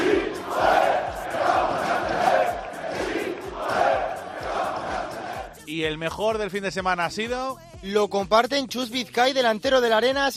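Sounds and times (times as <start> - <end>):
Baracaldo football fans chanting after a victory: 0.0 - 5.7
speech: 5.8 - 10.3.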